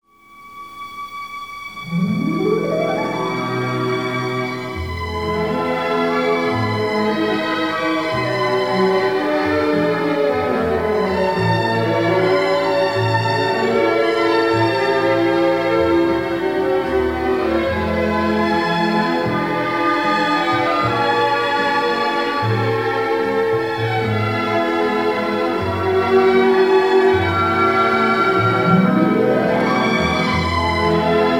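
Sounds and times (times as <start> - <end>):
easy listening strings: 0.6 - 31.3.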